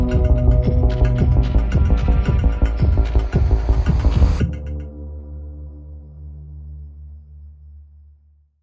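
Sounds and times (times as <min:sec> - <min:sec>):
bass swells: 0:00.0 - 0:04.6
drums: 0:00.0 - 0:04.8.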